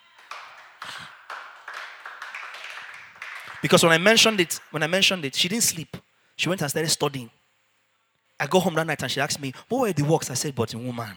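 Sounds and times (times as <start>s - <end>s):
audience clapping: 0.0s - 5.2s
speech: 3.6s - 7.4s, 8.4s - 11.1s.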